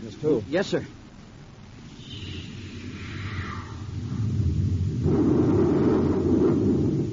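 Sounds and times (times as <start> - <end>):
space torpedo being fired: 2.0 - 7.1.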